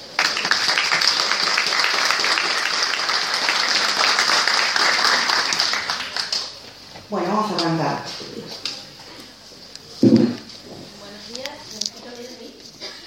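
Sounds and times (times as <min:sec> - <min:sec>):
audience applause: 0:00.0 - 0:06.7
speech: 0:07.1 - 0:08.6.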